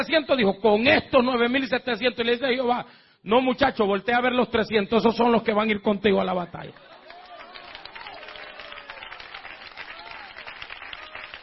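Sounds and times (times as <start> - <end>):
speech: 0.0 - 6.9
audience applause: 6.7 - 11.4
cheering voices: 6.8 - 11.4.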